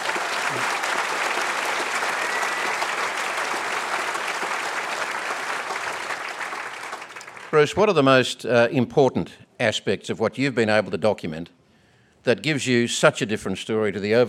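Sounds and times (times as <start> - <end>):
audience applause welcoming a speaker onto the stage: 0.0 - 7.7
speech: 7.5 - 11.6, 12.2 - 14.2.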